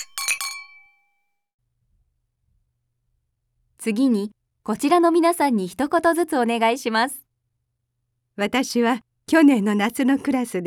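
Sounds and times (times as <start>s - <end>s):
glasses clinking in a toast: 0.0s - 1.0s
speech: 3.8s - 7.2s, 8.4s - 10.6s.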